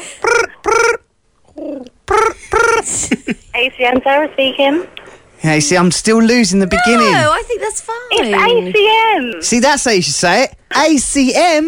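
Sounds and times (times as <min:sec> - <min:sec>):
voice imitating a phone ringing: 0:00.0 - 0:01.0, 0:02.1 - 0:02.9
speech: 0:03.0 - 0:11.6.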